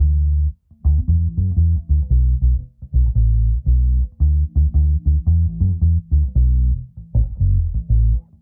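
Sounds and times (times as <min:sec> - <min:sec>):
bass: 0:00.0 - 0:08.4.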